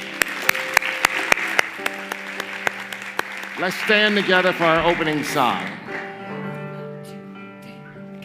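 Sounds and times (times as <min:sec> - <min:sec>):
audience applauding: 0:00.0 - 0:06.8
speech: 0:03.6 - 0:05.8.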